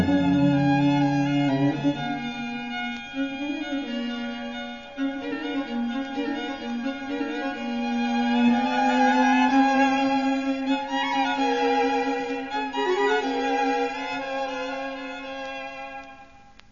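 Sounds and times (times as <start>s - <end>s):
string quartet playing in D major: 0.0s - 16.2s.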